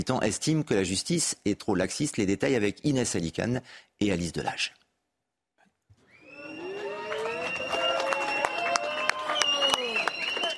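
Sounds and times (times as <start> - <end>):
speech: 0.0 - 4.8
supporters applauding outside a courthouse: 6.2 - 10.5.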